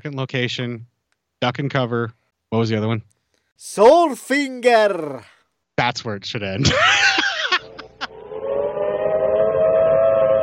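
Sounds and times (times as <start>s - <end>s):
speech: 0.0s - 7.1s
laughter: 6.6s - 8.2s
civil defense warning siren wailing: 8.1s - 10.4s.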